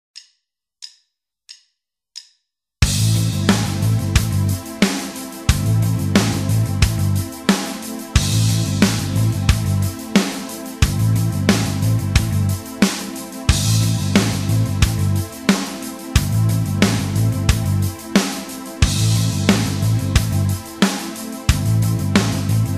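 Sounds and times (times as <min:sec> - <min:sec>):
backing music: 0:02.8 - 0:22.7.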